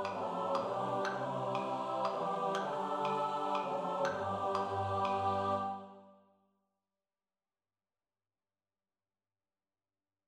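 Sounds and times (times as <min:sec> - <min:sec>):
SATB choir singing: 0:00.0 - 0:06.2.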